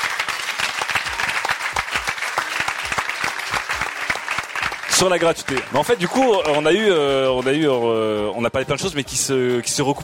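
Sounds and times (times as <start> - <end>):
audience applauding loudly: 0.0 - 8.0
speech: 5.0 - 10.0.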